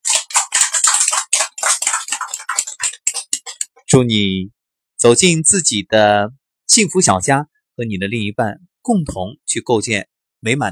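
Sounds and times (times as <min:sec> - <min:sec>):
small group clapping: 0:00.0 - 0:03.8
speech: 0:03.9 - 0:10.6.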